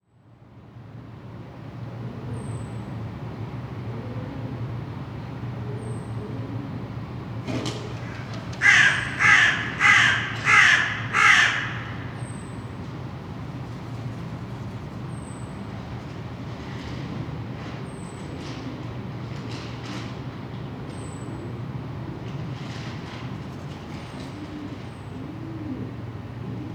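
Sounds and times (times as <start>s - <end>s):
crows cawing: 7.9s - 12.4s.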